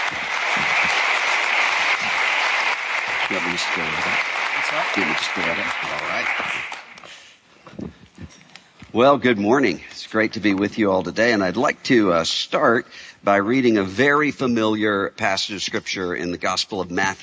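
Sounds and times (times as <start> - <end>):
audience applause welcoming a speaker: 0.0 - 7.0
speech: 3.3 - 6.8, 9.0 - 17.2.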